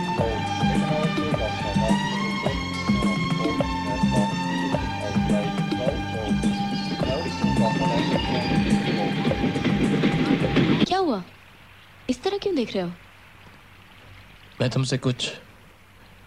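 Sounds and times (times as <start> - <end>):
approaching train rumbling: 0.2 - 10.9
speech: 12.6 - 13.1, 14.6 - 15.5.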